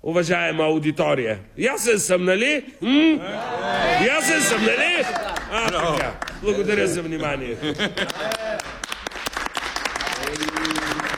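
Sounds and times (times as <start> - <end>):
speech: 0.0 - 8.4
laughter: 3.2 - 8.8
audience applause: 4.3 - 6.9, 7.8 - 11.1.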